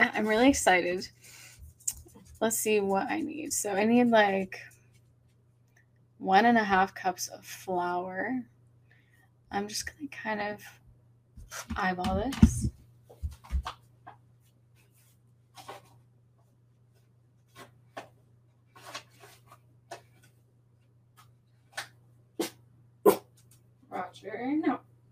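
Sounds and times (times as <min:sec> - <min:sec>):
steady low electrical hum: 0:00.0 - 0:25.1
speech: 0:00.2 - 0:01.4, 0:02.4 - 0:04.7, 0:06.2 - 0:08.5, 0:09.5 - 0:10.8, 0:11.5 - 0:12.7
dog barking: 0:22.4 - 0:23.2.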